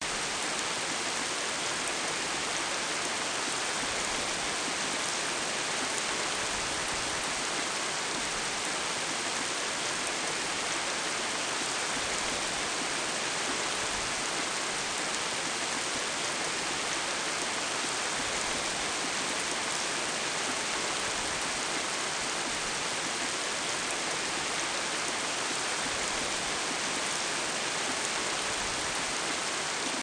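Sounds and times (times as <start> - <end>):
rain: 0.0 - 30.0.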